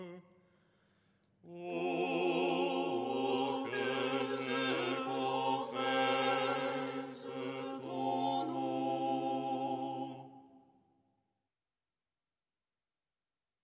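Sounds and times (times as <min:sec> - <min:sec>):
ensemble chanting lucernaire stichera: 0:01.5 - 0:10.7.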